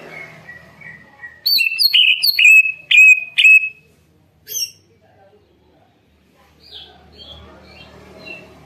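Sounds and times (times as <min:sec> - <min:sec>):
leafbird song with sharp varied whistled phrases: 0:00.1 - 0:03.8.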